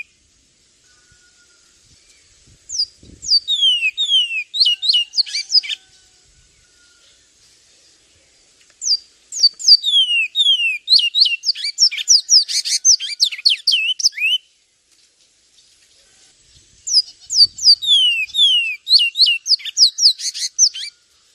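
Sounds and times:
Javan tesia singing high whistled notes: 0:00.9 - 0:05.8, 0:08.9 - 0:14.5, 0:16.9 - 0:21.0.

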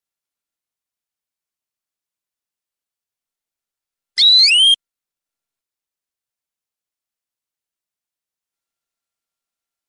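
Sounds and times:
canary singing long-duration rolling trill: 0:04.2 - 0:04.7.

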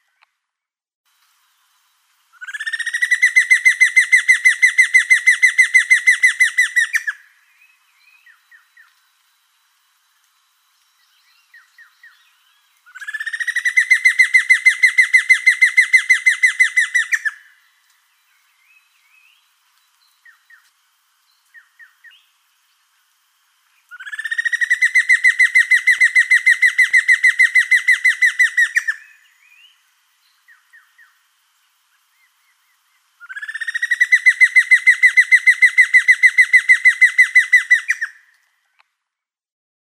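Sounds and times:
giant antshrike calling: 0:02.4 - 0:09.0, 0:11.4 - 0:17.6, 0:23.8 - 0:29.8, 0:32.0 - 0:38.4.

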